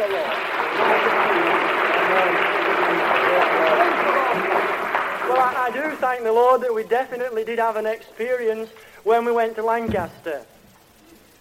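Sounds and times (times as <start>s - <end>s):
audience clapping: 0.0s - 7.4s
speech: 5.7s - 10.5s.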